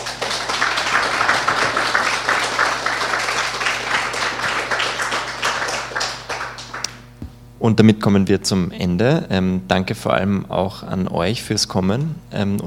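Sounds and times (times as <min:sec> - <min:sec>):
audience applause: 0:00.0 - 0:07.0
speech: 0:07.6 - 0:12.6.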